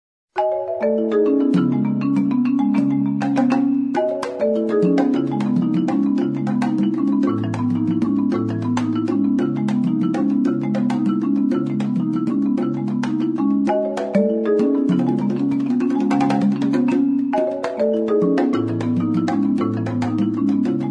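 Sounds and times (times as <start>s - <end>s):
rhythmic song: 0.4s - 20.8s.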